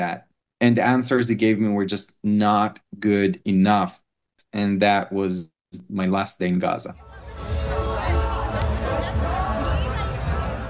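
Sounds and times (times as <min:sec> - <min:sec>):
speech: 0:00.0 - 0:07.6
crowd at a political rally murmuring: 0:07.0 - 0:10.6.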